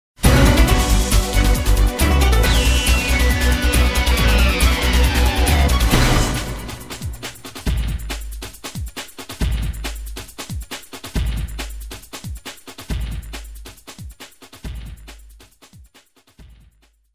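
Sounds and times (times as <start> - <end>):
music sting: 0.2 - 7.9.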